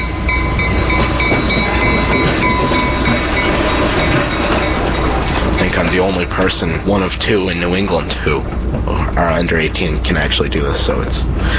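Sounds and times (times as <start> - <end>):
train rolling along tracks: 0.0 - 11.5
train wheels clicking and clacking over rail joints: 0.0 - 11.5
speech: 6.0 - 11.5.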